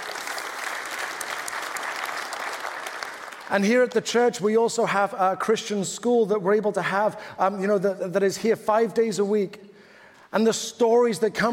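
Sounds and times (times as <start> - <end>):
audience applause: 0.0 - 4.0
speech: 3.5 - 9.7, 10.3 - 11.5.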